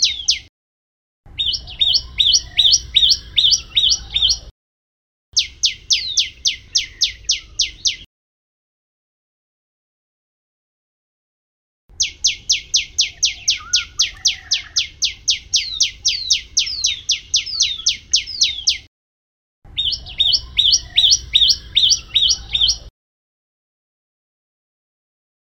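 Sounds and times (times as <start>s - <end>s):
prenjak lumut bird alarm call: 0.0s - 0.5s, 1.3s - 4.5s, 5.4s - 8.1s, 11.9s - 18.9s, 19.7s - 22.9s.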